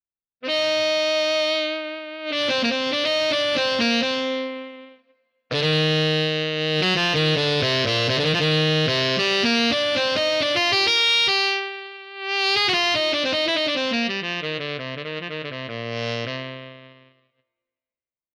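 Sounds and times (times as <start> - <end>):
Yamaha YDS 150 digital saxophone tenor overdrive tone: 0.4 - 17.3.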